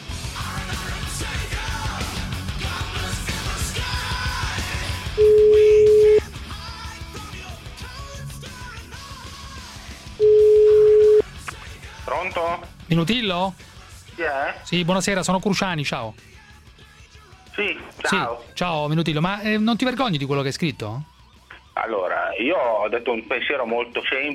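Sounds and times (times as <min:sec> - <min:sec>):
music: 0:00.0 - 0:24.3
phone line ringback tones while a call goes through: 0:05.2 - 0:06.2, 0:10.2 - 0:11.2
speech: 0:12.9 - 0:16.4, 0:17.6 - 0:21.1, 0:21.8 - 0:24.3.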